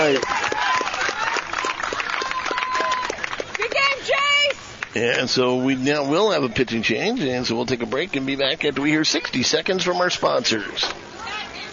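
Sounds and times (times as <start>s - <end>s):
baseball crowd applauding: 0.0s - 5.0s
murmur of voices: 3.6s - 11.7s
speech: 5.0s - 11.0s.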